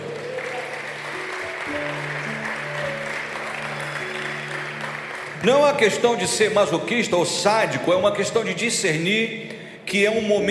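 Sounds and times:
audience applause: 0:00.0 - 0:06.5
speech: 0:05.4 - 0:10.4.

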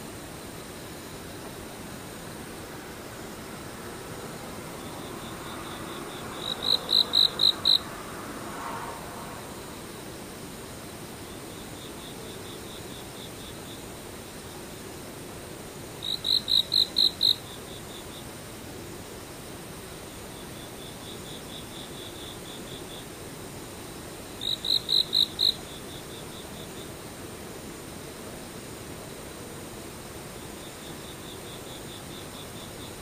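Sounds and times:
insects chirring: 0:00.0 - 0:33.0.

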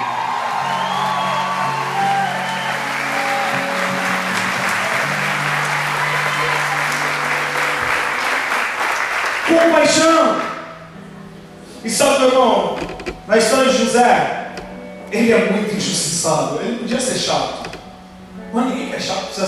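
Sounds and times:
whoops and raised voices: 0:00.0 - 0:07.4
audience applauding: 0:00.0 - 0:10.7
speech: 0:09.6 - 0:10.5, 0:11.8 - 0:14.4, 0:15.1 - 0:17.6, 0:18.5 - 0:19.4.

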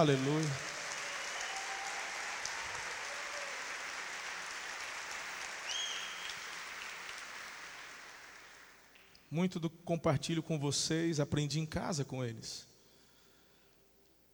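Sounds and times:
speech: 0:00.0 - 0:00.7, 0:09.3 - 0:12.7
crowd applauding: 0:00.0 - 0:09.2
high whistle: 0:05.6 - 0:06.4.

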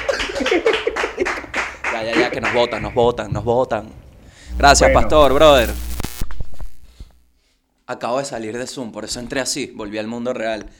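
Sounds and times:
applause: 0:00.0 - 0:02.8
speech: 0:02.0 - 0:05.8, 0:07.9 - 0:10.7.

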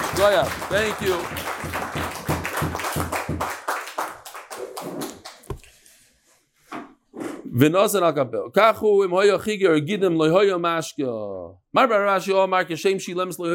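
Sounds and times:
round of applause: 0:00.0 - 0:05.4
speech: 0:00.2 - 0:02.0, 0:07.6 - 0:13.5.

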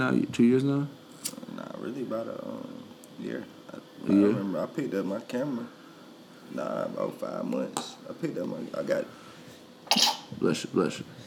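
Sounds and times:
speech: 0:00.0 - 0:05.8, 0:06.5 - 0:09.2, 0:10.4 - 0:11.2
person sneezing: 0:09.9 - 0:10.4.

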